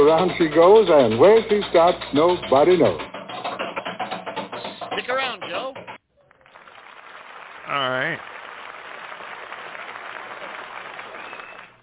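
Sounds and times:
speech: 0.0s - 3.1s, 7.7s - 8.3s
studio audience applause: 6.2s - 11.8s.

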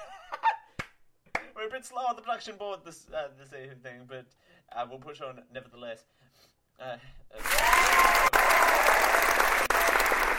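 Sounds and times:
speech: 1.7s - 8.3s
crowd applause sound effect: 7.4s - 10.3s.

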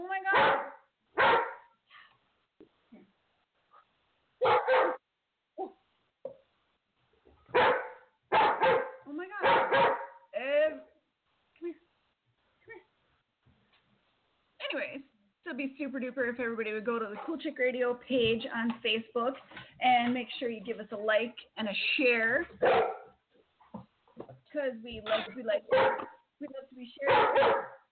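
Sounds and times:
dog barking: 0.3s - 1.8s, 4.4s - 5.0s, 7.5s - 10.3s, 22.6s - 23.2s, 25.7s - 26.2s, 27.1s - 27.9s
speech: 15.6s - 23.0s, 24.6s - 27.7s.

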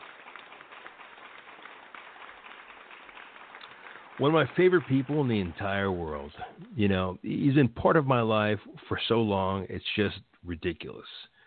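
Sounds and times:
applause clap track played: 0.0s - 7.2s
speech: 4.2s - 11.3s.

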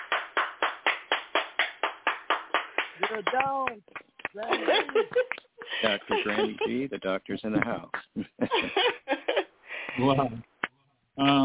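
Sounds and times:
hand claps honouring an award recipient: 0.0s - 6.6s, 7.5s - 8.2s, 10.6s - 11.4s
speech: 3.1s - 9.2s, 10.0s - 10.5s, 11.2s - 11.4s
laughter: 4.4s - 9.5s.

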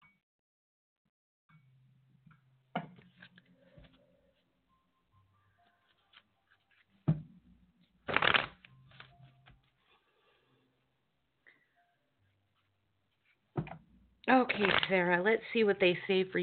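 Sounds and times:
cards shuffled for a card reading: 5.9s - 6.9s, 8.0s - 9.5s, 14.5s - 15.0s
speech: 14.3s - 16.4s.

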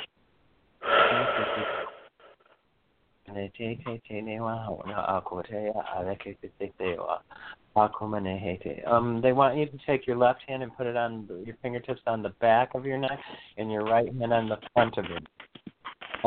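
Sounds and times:
deep breath in through the nose and out through the mouth: 0.8s - 2.1s
speech: 3.4s - 15.5s.

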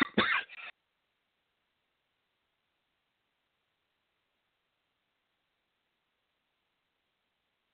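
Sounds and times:
person coughing fit: 0.0s - 0.7s
throat clearing: 0.0s - 0.7s.

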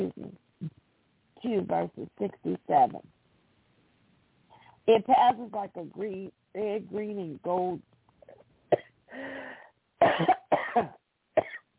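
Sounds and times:
speech: 1.5s - 3.2s, 4.9s - 7.9s, 10.2s - 11.0s
wheezy intake of breath: 9.1s - 9.7s
coughing after swallowing the wrong way: 10.0s - 11.6s.

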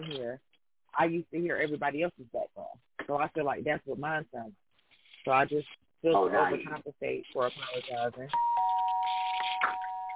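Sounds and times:
speech: 0.0s - 4.6s, 5.2s - 8.7s
doorbell ringing: 8.4s - 10.1s.

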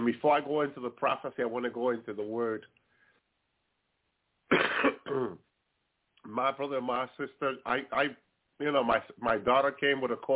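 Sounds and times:
speech: 0.0s - 2.8s, 5.1s - 5.4s, 6.2s - 10.3s
cough: 4.5s - 5.5s.

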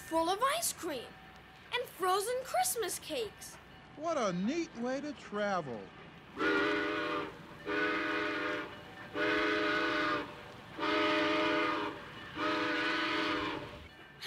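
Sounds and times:
speech: 0.1s - 6.8s, 7.6s - 7.9s
train whistle: 6.4s - 13.9s.

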